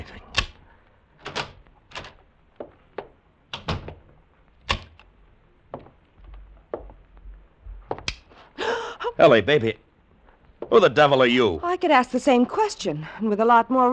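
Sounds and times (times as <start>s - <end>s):
key turning in a door lock: 1.2s - 2.3s
speech: 9.2s - 9.8s, 10.7s - 13.9s.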